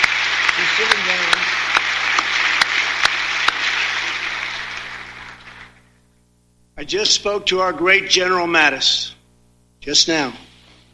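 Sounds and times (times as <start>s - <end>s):
audience clapping: 0.0s - 5.9s
speech: 0.8s - 1.5s, 6.9s - 9.2s, 9.8s - 10.5s.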